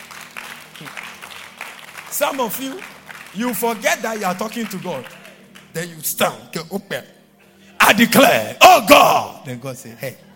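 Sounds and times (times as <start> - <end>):
audience applause: 0.0 - 5.7
speech: 0.8 - 1.0, 2.2 - 7.2, 7.8 - 10.2.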